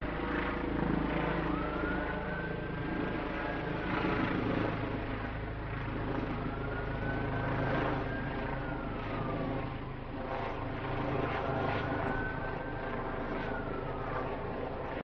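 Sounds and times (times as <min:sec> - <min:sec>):
police helicopter in Newcastle upon Tyne UK: 0:00.0 - 0:15.0.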